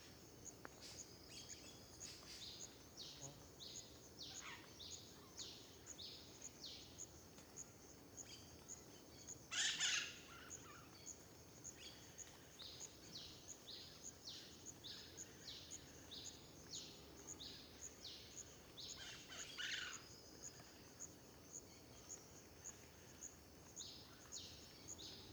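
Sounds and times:
cricket chirping at dawn in a park near a road: 0:00.0 - 0:25.3.

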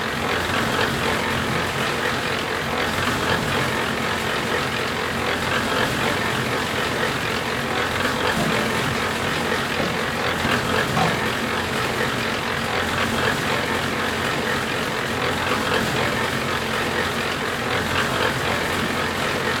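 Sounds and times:
concrete mixer running at a construction site: 0:00.0 - 0:19.5
banging: 0:07.6 - 0:12.1.

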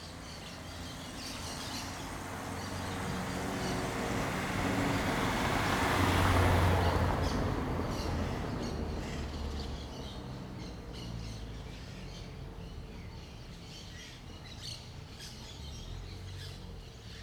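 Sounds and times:
birds in a small-town backyard by day: 0:00.0 - 0:17.2
cars passing: 0:00.1 - 0:12.9.

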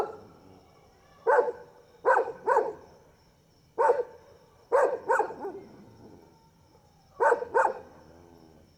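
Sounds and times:
dogs barking at night: 0:01.2 - 0:02.8, 0:03.8 - 0:05.6, 0:07.2 - 0:08.0.

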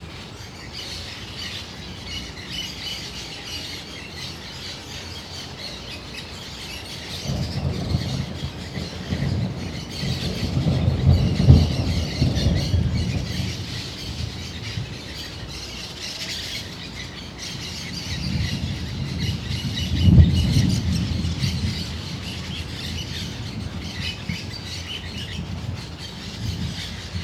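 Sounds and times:
many birds: 0:00.0 - 0:27.2
thunder heard from a balcony: 0:06.6 - 0:27.2.

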